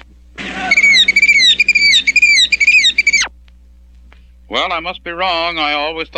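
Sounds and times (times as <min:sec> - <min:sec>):
person imitating a killdeer call: 0:00.4 - 0:03.3
speech: 0:04.5 - 0:06.1.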